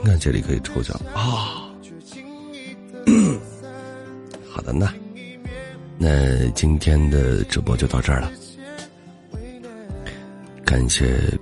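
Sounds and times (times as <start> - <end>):
speech: 0.1 - 1.6, 4.6 - 5.0, 6.0 - 8.4, 10.7 - 11.4
cough: 3.1 - 3.5.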